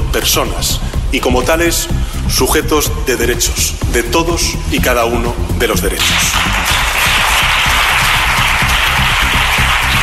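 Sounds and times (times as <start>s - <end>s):
speech: 0.2s - 7.3s
applause from the Senate benches: 6.0s - 10.0s.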